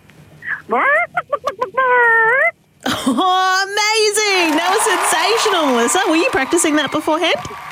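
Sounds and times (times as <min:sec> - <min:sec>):
person imitating a chicken clucking: 0:00.4 - 0:02.6
speech: 0:00.7 - 0:02.4, 0:03.1 - 0:07.6.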